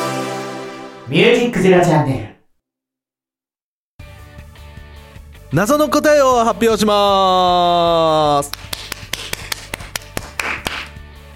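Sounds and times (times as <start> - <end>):
speech: 1.1 - 2.3, 5.5 - 8.6
loud hand clapping: 8.2 - 11.0.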